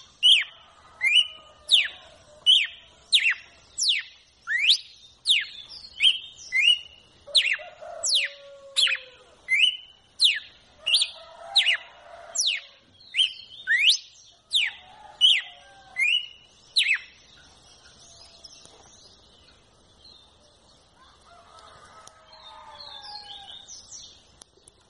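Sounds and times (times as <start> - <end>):
red-cowled cardinal whistled song: 0.0 - 11.8, 12.4 - 17.2.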